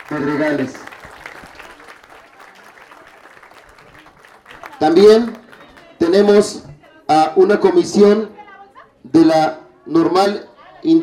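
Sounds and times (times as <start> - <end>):
crowd clapping: 0.0 - 6.9
speech: 0.1 - 0.9, 4.8 - 5.4, 6.1 - 8.3, 9.0 - 11.0.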